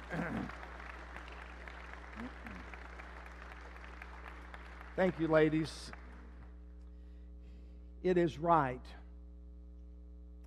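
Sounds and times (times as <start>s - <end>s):
audience applause: 0.0s - 6.6s
speech: 5.0s - 6.0s, 8.0s - 9.0s.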